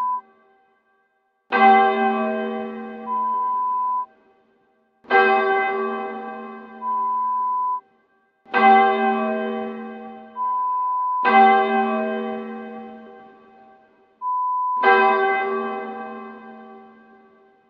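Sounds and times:
church bell ringing: 1.5 - 4.0, 5.1 - 7.6, 8.5 - 13.9, 14.8 - 17.6.

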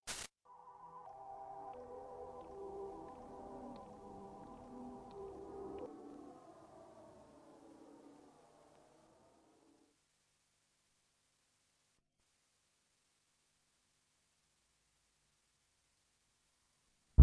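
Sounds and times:
deep space drift ambience: 0.6 - 9.9.

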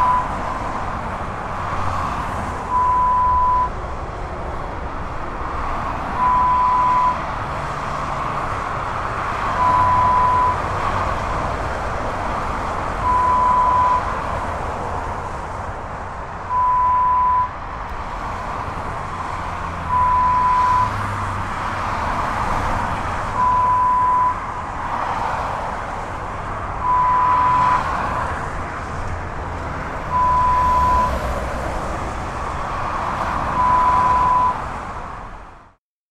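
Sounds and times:
motorway traffic: 0.0 - 35.8.

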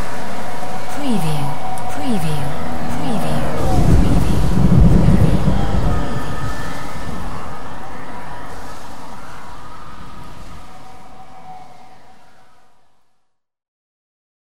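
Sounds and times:
city traffic: 0.0 - 9.4
voices: 0.0 - 12.2.

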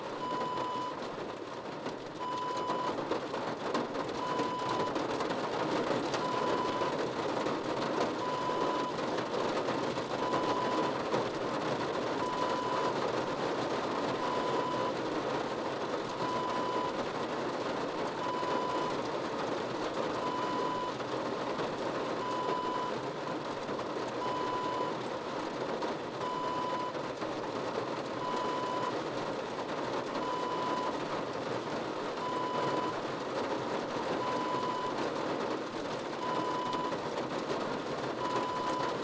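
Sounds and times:
rain on car roof: 0.0 - 39.0.

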